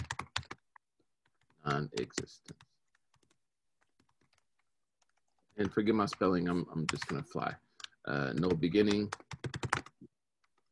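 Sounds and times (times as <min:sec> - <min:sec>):
typing on a computer keyboard: 0:00.0 - 0:10.7
speech: 0:01.8 - 0:02.7, 0:05.6 - 0:09.3.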